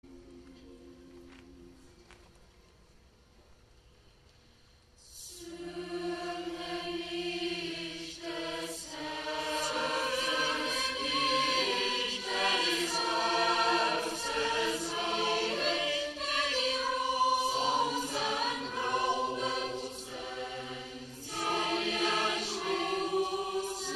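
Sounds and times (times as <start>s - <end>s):
choirs singing: 5.0s - 23.9s.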